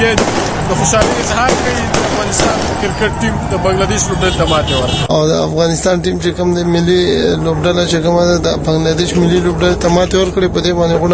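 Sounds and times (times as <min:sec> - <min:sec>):
celebratory gunfire in city streets: 0:00.0 - 0:03.2
speech: 0:00.1 - 0:11.1.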